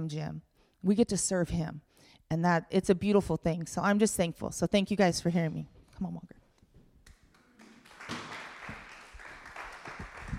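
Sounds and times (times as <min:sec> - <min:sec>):
speech: 0:00.0 - 0:06.4
hand claps: 0:07.0 - 0:10.3.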